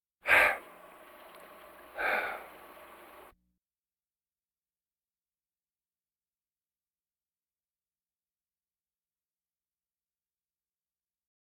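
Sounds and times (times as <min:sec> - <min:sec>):
breathing vocal effects: 0:00.2 - 0:00.8, 0:01.8 - 0:03.3.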